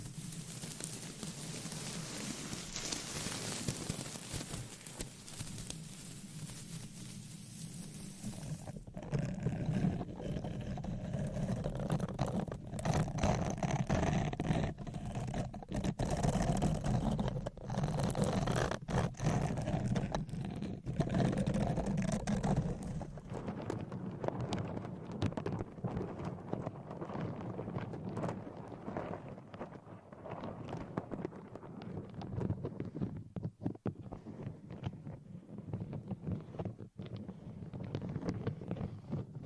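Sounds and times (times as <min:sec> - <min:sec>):
hissy scratching: 0:00.0 - 0:23.3
rubbing with low rumble: 0:00.0 - 0:39.4.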